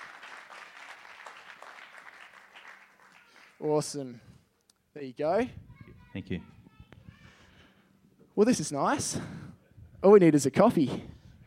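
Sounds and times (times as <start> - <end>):
crowd applause: 0.0 - 3.6
speech: 3.6 - 4.3, 5.0 - 5.6, 6.2 - 6.6, 8.4 - 9.4, 10.0 - 11.1.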